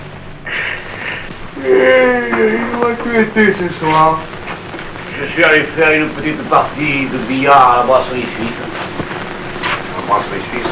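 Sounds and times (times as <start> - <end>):
man yawning: 1.6 - 2.8
speech: 2.4 - 4.4, 5.2 - 9.0, 10.1 - 10.7.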